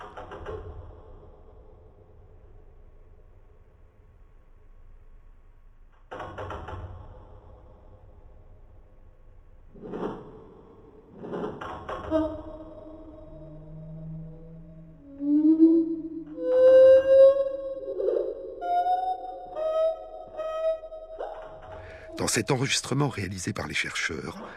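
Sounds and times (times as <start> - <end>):
slowed-down birdsong: 12.1 - 23.2
speech: 22.3 - 24.5.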